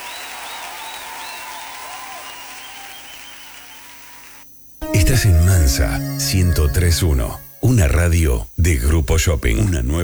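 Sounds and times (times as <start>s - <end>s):
audience applause: 0.0s - 4.4s
speech: 5.2s - 10.0s.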